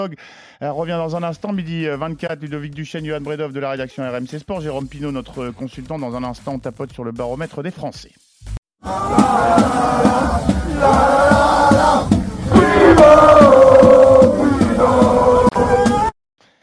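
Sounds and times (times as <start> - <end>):
speech: 0.0 - 11.1
cycling fans chanting along Tour route: 8.8 - 16.1.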